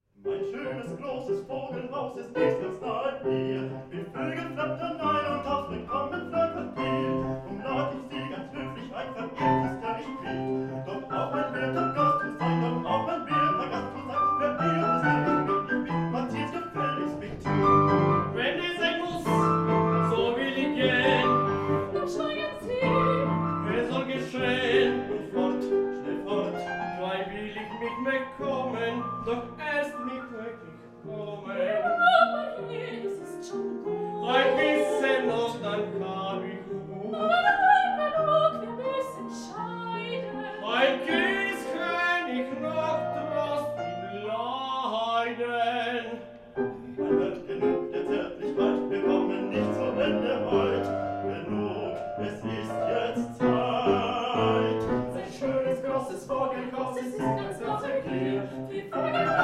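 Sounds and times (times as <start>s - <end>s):
vocal trio: 0.2s - 59.4s.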